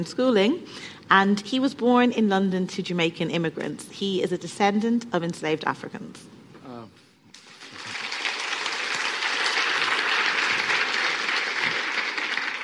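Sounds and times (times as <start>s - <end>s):
speech: 0.0s - 6.4s
audience applause: 7.4s - 12.6s.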